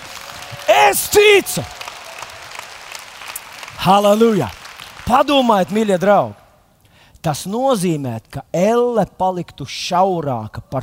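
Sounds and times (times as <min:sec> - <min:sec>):
audience applause: 0:00.0 - 0:06.1
speech: 0:00.9 - 0:01.8, 0:03.8 - 0:06.4, 0:07.2 - 0:10.8.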